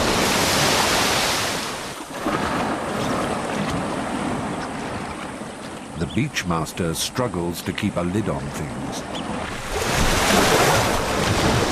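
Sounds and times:
hippos thrashing in water: 0.0s - 5.5s, 9.3s - 11.7s
speech: 6.2s - 9.8s.

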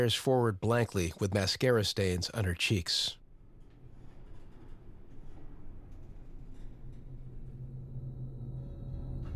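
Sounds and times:
speech: 0.0s - 3.2s
elevator descending with mechanical rumble and hum: 3.3s - 9.3s
faint tonal drone: 4.0s - 9.3s.

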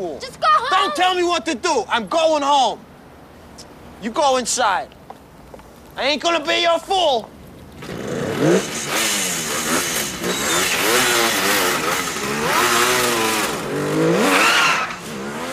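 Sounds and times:
speech: 0.0s - 2.9s, 4.0s - 5.0s, 6.0s - 9.0s
car engine revving as it drives off: 7.8s - 15.5s.

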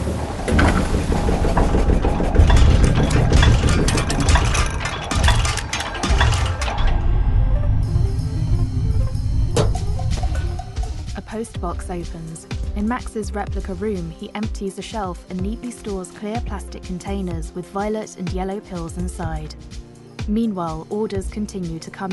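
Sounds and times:
pill-punching machine running: 0.5s - 11.2s
speech: 11.4s - 22.1s.

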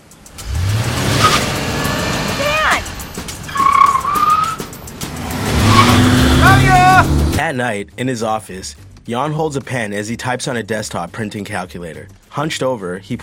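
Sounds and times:
car pulling out into the street: 0.0s - 7.4s
tire squeals: 0.4s - 7.4s
speech: 7.5s - 13.2s.

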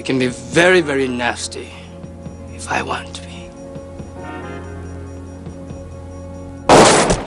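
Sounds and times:
speech: 0.0s - 1.8s, 2.6s - 3.2s
quiet tonal music: 0.0s - 6.7s
gunshot fired through a drawing board: 6.7s - 7.2s.

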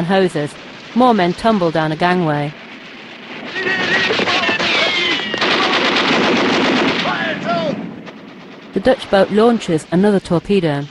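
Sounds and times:
speech: 0.0s - 2.6s, 8.7s - 10.8s
machine-gun fire: 0.1s - 9.7s
whistling tones: 3.5s - 5.7s
people shouting: 3.5s - 6.0s, 7.0s - 7.8s.

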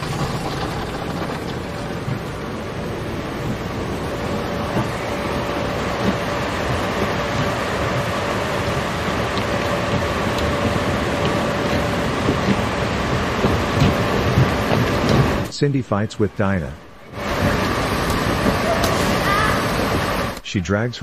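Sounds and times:
automatic car wash spraying water: 0.0s - 20.6s
low mechanical rumble: 0.0s - 21.0s
speech: 15.6s - 16.8s, 20.5s - 21.0s.

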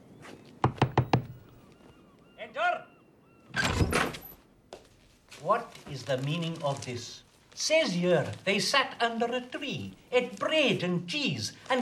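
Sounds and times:
knocking on a door: 0.6s - 1.4s
speech: 5.4s - 11.8s.

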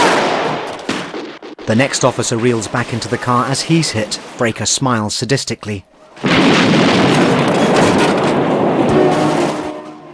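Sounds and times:
gunfire in a police shootout film scene: 0.0s - 3.2s, 6.2s - 9.9s
speech: 1.7s - 7.1s.

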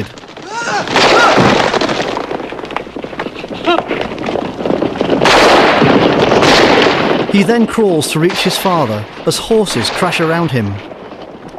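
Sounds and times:
gunshots piercing wooden doors: 0.0s - 3.1s, 3.8s - 11.0s
woman screaming: 0.4s - 1.4s
speech: 7.3s - 11.0s.

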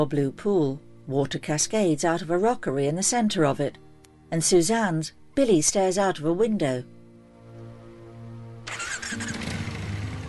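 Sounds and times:
speech: 0.0s - 7.0s
motorbike engine: 8.7s - 10.2s.

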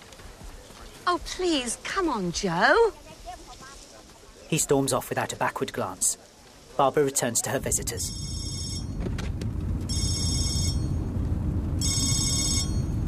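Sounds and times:
speech: 1.1s - 3.0s, 4.5s - 8.4s
telephone ringing: 8.0s - 9.0s, 9.9s - 11.0s, 11.8s - 12.9s.

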